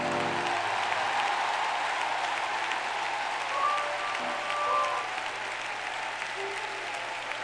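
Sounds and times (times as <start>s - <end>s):
audience clapping hands: 0.0s - 7.4s.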